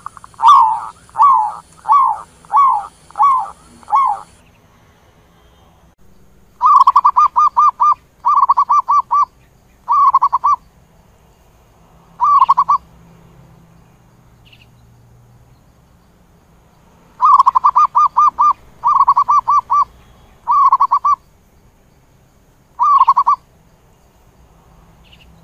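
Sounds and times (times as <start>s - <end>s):
zebra dove cooing: 0.0s - 4.4s, 6.6s - 9.3s, 9.9s - 10.6s, 12.2s - 12.8s, 17.2s - 21.2s, 22.8s - 23.4s.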